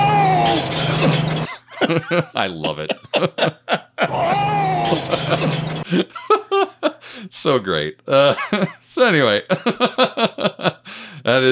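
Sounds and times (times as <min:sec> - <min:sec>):
Wilhelm scream sound effect: 0:00.0 - 0:00.8, 0:04.0 - 0:05.4
laughter: 0:00.4 - 0:07.0, 0:08.2 - 0:08.8, 0:09.5 - 0:10.8
speech: 0:01.9 - 0:04.3, 0:04.9 - 0:11.5.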